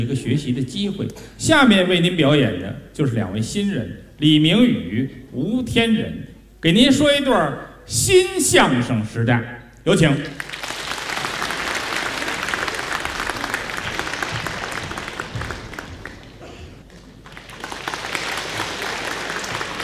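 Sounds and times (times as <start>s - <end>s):
speech: 0.0s - 10.6s
audience applause: 10.4s - 19.8s.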